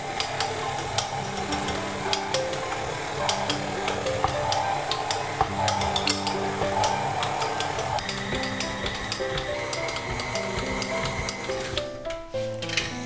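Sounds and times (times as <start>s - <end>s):
stand mixer kneading dough at medium speed: 0.0s - 12.0s.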